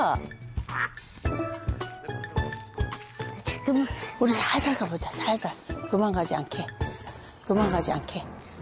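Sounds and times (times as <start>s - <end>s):
speech: 0.0s - 1.6s, 3.7s - 6.8s, 7.5s - 8.4s
large duck quacking: 0.7s - 1.0s.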